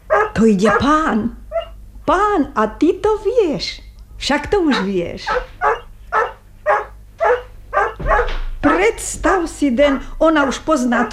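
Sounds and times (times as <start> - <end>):
collie dog barking in greeting: 0.0 - 1.8, 4.7 - 8.9
speech: 0.4 - 1.4, 2.1 - 5.5, 8.9 - 11.1.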